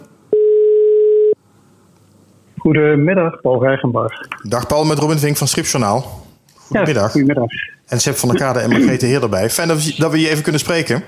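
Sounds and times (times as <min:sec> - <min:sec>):
telephone dial tone while calling: 0:00.3 - 0:01.4
speech: 0:02.6 - 0:11.0.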